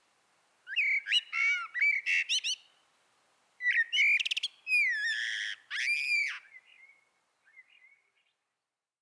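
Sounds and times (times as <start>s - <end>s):
Common blackbird Turdus merula song of fluty whistles and squeaky twitters: 0.7s - 2.8s, 3.6s - 8.4s.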